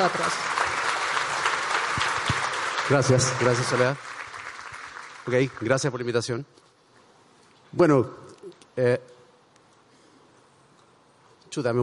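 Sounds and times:
speech: 0:00.0 - 0:00.6, 0:02.9 - 0:04.1, 0:05.3 - 0:06.6, 0:07.7 - 0:08.2, 0:08.8 - 0:09.1, 0:11.6 - 0:11.8
audience applause welcoming a guest: 0:00.0 - 0:06.0.

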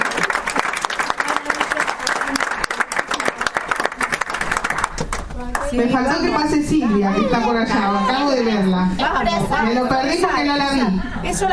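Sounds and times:
audience applause: 0:00.0 - 0:05.7
speech: 0:05.7 - 0:11.5.

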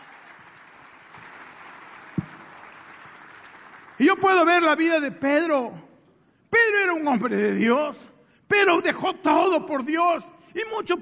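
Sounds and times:
audience applauding: 0:00.0 - 0:04.6
speech: 0:04.0 - 0:05.8, 0:06.8 - 0:11.0.

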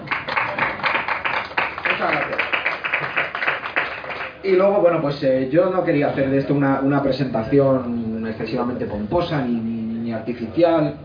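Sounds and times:
audience applause: 0:00.0 - 0:04.4
speech: 0:04.4 - 0:11.0.

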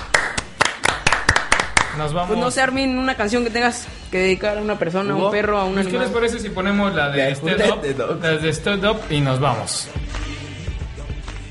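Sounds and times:
crowd hand clapping applause: 0:00.0 - 0:02.3
speech: 0:02.0 - 0:10.3.

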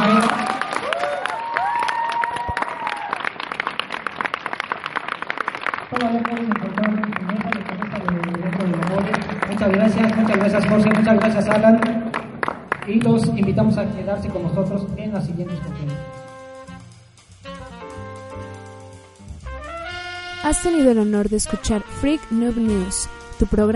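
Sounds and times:
audience applause: 0:00.0 - 0:13.8
speech: 0:10.6 - 0:12.0, 0:12.9 - 0:16.3, 0:20.5 - 0:23.7.

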